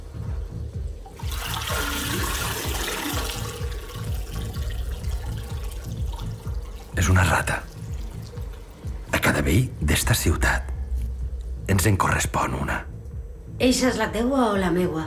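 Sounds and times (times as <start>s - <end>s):
toilet flushing with chain pulled: 0.2s - 9.1s
speech: 7.0s - 7.7s, 9.4s - 10.7s, 11.7s - 12.9s, 13.6s - 15.0s.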